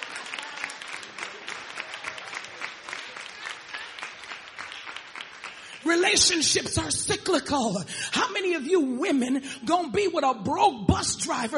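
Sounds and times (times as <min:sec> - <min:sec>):
room full of people clapping: 0:00.0 - 0:06.3
speech: 0:05.9 - 0:11.5.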